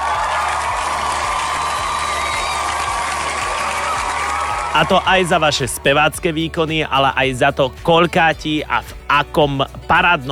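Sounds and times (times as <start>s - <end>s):
applause: 0.0s - 5.8s
cheering: 0.0s - 6.2s
speech: 4.8s - 10.3s.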